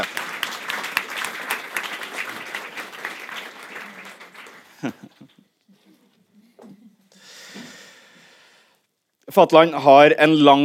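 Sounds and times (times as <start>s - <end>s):
applause: 0.0s - 5.4s
laughter: 3.5s - 5.8s
speech: 4.8s - 5.1s, 9.3s - 10.6s.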